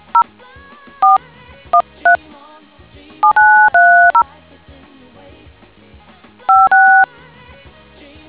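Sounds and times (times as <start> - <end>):
DTMF tones: 3.2 - 4.2, 6.5 - 7.1.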